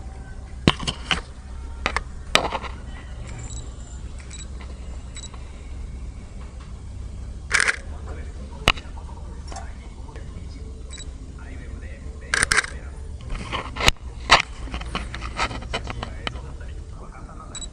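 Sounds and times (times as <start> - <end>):
low steady hum: 0.0 - 17.7
camera shutter clicks while photographing a theater room: 7.5 - 7.8.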